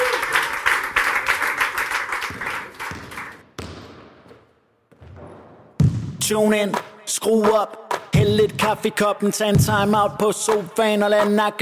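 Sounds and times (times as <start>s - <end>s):
studio audience applause at a basketball quiz show: 0.0s - 3.4s
speech: 6.2s - 11.6s.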